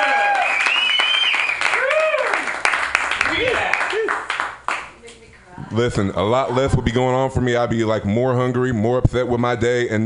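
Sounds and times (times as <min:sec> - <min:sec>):
whoops and cheers: 0:00.0 - 0:02.5
audience clapping: 0:00.0 - 0:05.0
speech: 0:05.8 - 0:10.0.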